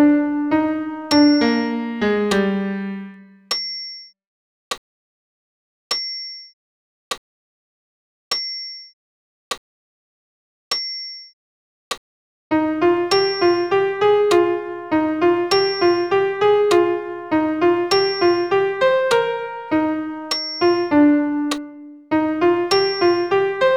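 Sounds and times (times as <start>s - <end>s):
solo piano Credo piece: 0.0s - 3.5s, 12.5s - 23.7s.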